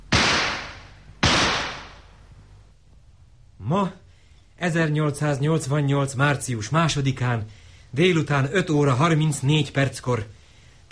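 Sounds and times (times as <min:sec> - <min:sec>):
signal shots from a rifle: 0:00.1 - 0:02.1
speech: 0:03.7 - 0:04.0, 0:04.6 - 0:10.9.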